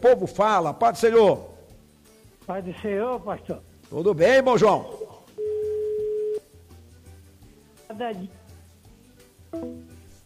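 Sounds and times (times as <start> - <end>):
speech: 0.0 - 1.5, 2.5 - 5.0, 8.0 - 8.4, 9.5 - 10.0
telephone busy tone after a caller hangs up: 5.4 - 6.4.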